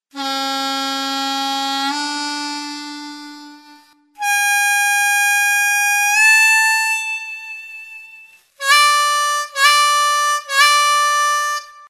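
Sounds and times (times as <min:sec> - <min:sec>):
harmonica note bending: 0:00.1 - 0:11.8.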